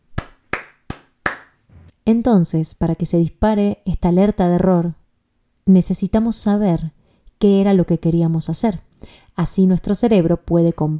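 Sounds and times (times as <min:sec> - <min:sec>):
applause: 0:00.2 - 0:01.5
speech: 0:02.1 - 0:05.0, 0:05.6 - 0:10.9.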